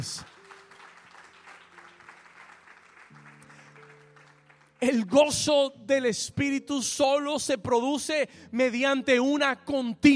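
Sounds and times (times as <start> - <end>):
speech: 0.0 - 0.3, 4.8 - 10.1
audience applause: 0.0 - 4.8.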